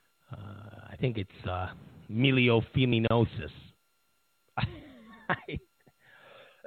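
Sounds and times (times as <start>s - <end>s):
speech: 1.0s - 3.7s, 4.6s - 4.8s
coughing: 4.6s - 5.9s.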